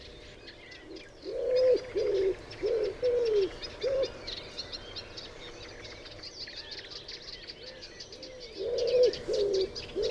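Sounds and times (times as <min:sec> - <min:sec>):
common wood pigeon Columba palumbus cooing: 0:01.2 - 0:04.2, 0:08.6 - 0:10.0.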